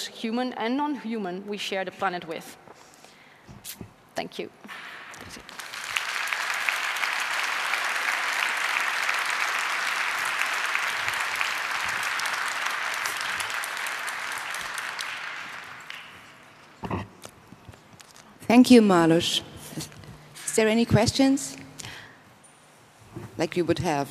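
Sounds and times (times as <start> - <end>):
speech: 0.1 - 2.6, 4.2 - 5.6, 18.5 - 19.5, 20.6 - 21.6, 23.4 - 24.0
audience applause: 5.2 - 16.8.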